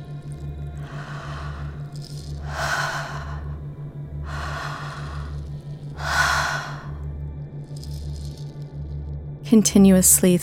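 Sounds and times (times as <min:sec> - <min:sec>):
low pulsing rhythmic hum: 0:00.0 - 0:10.3
continuous open-mouth breathing: 0:00.8 - 0:07.1
speech: 0:09.5 - 0:10.4.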